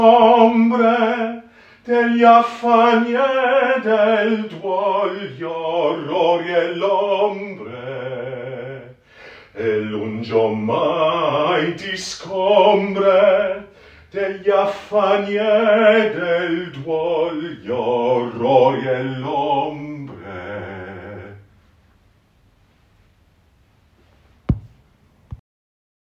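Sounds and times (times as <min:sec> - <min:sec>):
bass voice singing: 0:00.0 - 0:09.0, 0:09.6 - 0:21.4.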